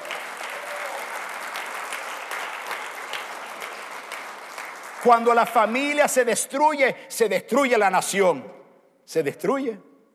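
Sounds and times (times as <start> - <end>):
loud audience applause: 0.0 - 6.0
speech: 5.0 - 9.9.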